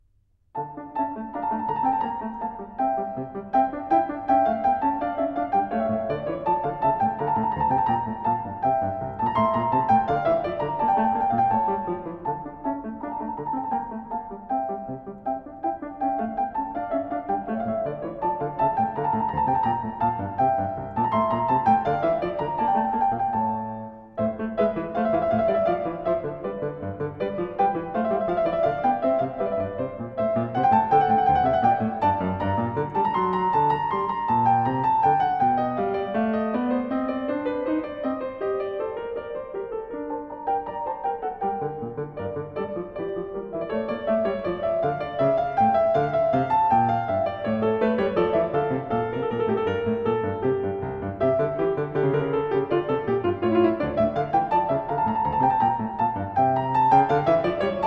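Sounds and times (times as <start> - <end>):
gavotte in D minor: 0.6 - 57.8.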